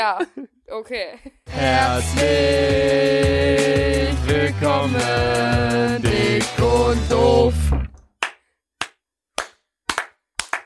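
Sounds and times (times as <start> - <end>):
speech: 0.0 - 7.8
hands clapping: 8.0 - 10.6.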